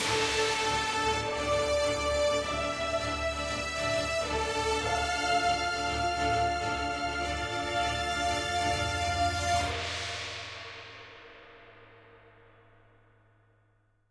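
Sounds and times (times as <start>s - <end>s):
escape music stinger: 0.0s - 10.3s.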